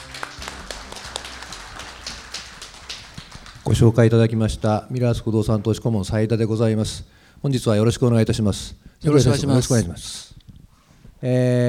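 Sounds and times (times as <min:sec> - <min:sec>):
audience applause: 0:00.0 - 0:04.0
speech: 0:03.7 - 0:10.4, 0:11.2 - 0:11.6.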